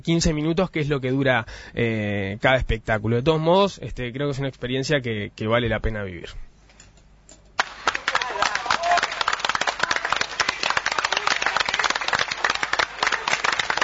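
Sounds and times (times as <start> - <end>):
speech: 0.0 - 6.5
sparse applause from a small audience: 7.6 - 13.8.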